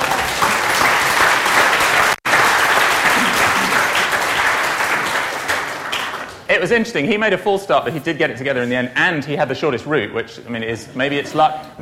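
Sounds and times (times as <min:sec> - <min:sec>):
applause: 0:00.0 - 0:06.5
speech: 0:06.6 - 0:11.8.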